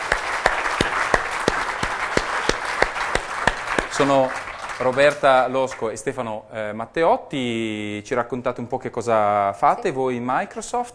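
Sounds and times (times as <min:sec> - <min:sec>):
sharp individual claps: 0:00.0 - 0:05.3
audience applause for guests: 0:00.0 - 0:05.8
speech: 0:04.0 - 0:10.9.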